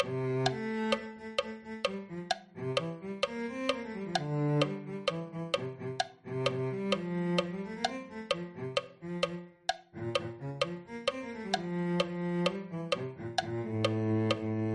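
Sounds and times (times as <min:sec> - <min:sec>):
cello: 0:00.0 - 0:14.7.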